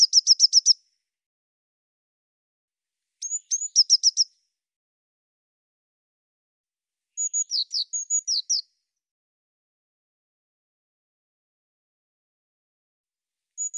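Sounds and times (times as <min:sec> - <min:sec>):
Eurasian blue tit thin high whistled notes: 0:00.0 - 0:00.8, 0:03.2 - 0:04.4, 0:07.1 - 0:08.8, 0:13.6 - 0:13.7.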